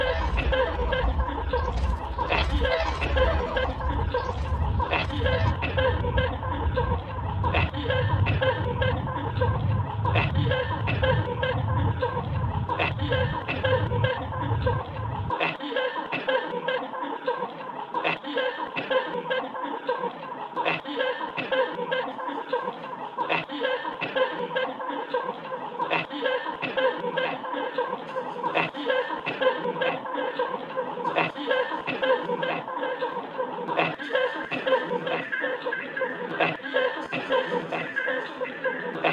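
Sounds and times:
deep low rumble: 0.0s - 15.3s
theatre audience laughing: 0.0s - 39.1s.

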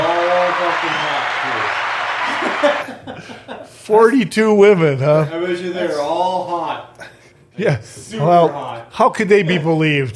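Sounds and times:
crowd clapping: 0.0s - 2.9s
faint laughter: 2.3s - 3.7s
speech: 3.9s - 7.0s, 7.6s - 10.1s.

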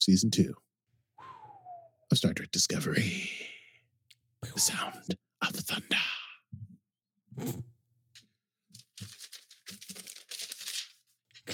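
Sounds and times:
speech: 0.0s - 0.7s, 2.1s - 3.6s, 4.5s - 6.1s, 7.4s - 7.7s
paper being crumpled and rustled: 8.7s - 11.5s.

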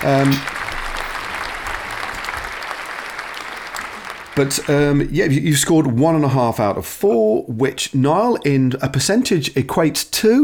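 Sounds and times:
speech: 0.0s - 0.5s, 4.4s - 10.4s
round of applause: 0.0s - 5.2s.

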